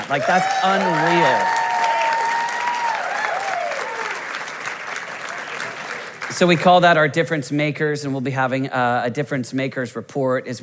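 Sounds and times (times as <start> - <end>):
applause from a large audience: 0.0 - 6.6
speech: 0.1 - 1.6, 6.3 - 10.6.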